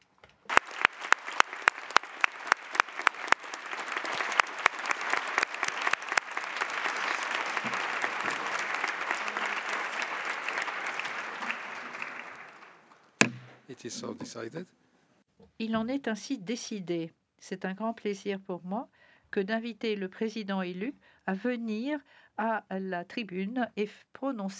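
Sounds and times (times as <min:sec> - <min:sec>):
applause in assembly hall: 0:00.5 - 0:13.1
speech: 0:13.8 - 0:14.8, 0:15.6 - 0:24.5.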